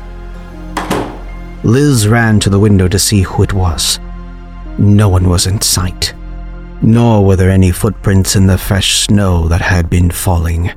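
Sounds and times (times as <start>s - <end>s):
door opening and banging shut: 0.7s - 1.4s
speech: 1.6s - 4.1s, 4.8s - 6.2s, 6.8s - 10.7s.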